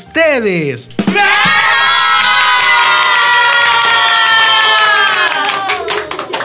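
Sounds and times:
speech: 0.0 - 1.3
crowd of children cheering with high-pitched shouts: 1.0 - 6.4
scattered clapping: 1.4 - 6.4.

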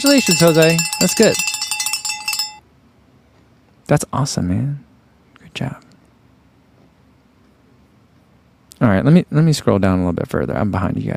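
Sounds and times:
speech: 0.0 - 1.5, 3.9 - 4.9, 5.6 - 5.8, 8.8 - 11.1
small handbell ringing in celebration: 0.0 - 2.6.

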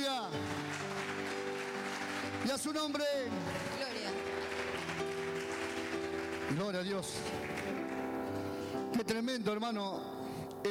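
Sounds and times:
audience applause: 0.0 - 8.2
speech: 2.5 - 3.8, 6.5 - 7.5, 9.0 - 10.6.

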